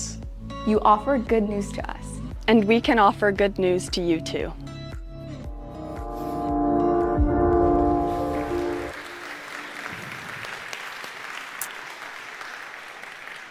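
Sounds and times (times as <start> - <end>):
speech: 0.6 - 4.7
sustained tonal chord: 5.4 - 9.8
audience applause: 8.0 - 13.5.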